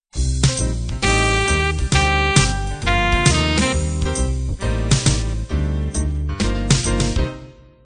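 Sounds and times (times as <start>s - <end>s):
cool jazz intro music: 0.2s - 7.5s.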